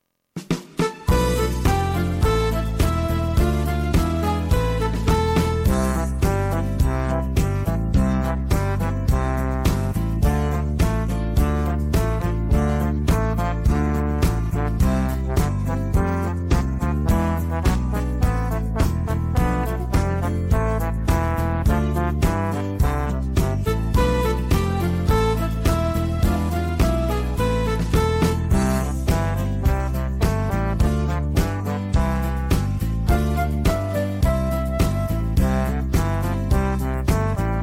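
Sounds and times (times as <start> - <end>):
backing track: 0.4 - 37.6.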